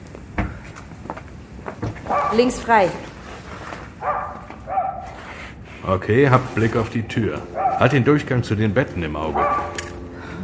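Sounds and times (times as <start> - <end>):
dog barking: 2.1 - 2.5, 4.0 - 5.2, 7.6 - 8.0, 9.3 - 9.9
speech: 2.1 - 3.1, 5.8 - 9.7.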